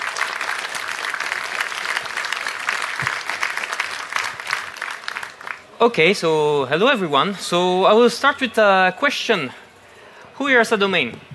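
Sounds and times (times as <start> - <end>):
audience applause: 0.0 - 5.7
speech: 5.8 - 9.6, 10.4 - 11.3.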